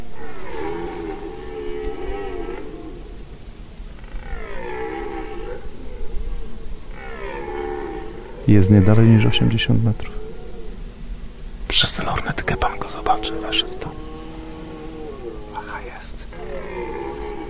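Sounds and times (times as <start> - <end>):
red deer stag roaring: 0.0 - 11.0, 11.7 - 17.4
speech: 8.5 - 10.2, 11.8 - 14.1, 15.8 - 17.1.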